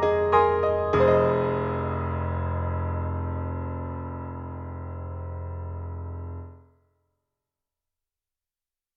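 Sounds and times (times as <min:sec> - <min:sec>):
Yamaha C7 grand piano live on stage: 0:00.0 - 0:06.7.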